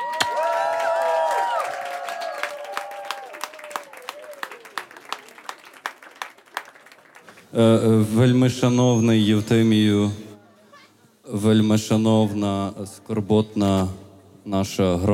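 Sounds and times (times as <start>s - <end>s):
audience cheering and whooping: 0.0s - 5.4s
audience applause: 0.0s - 7.5s
speech: 7.5s - 10.2s, 11.3s - 15.1s.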